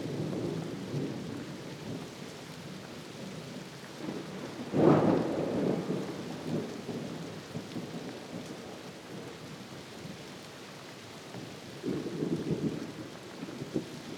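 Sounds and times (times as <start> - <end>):
thunderstorm: 0.0 - 2.1, 4.0 - 9.6, 11.4 - 14.1.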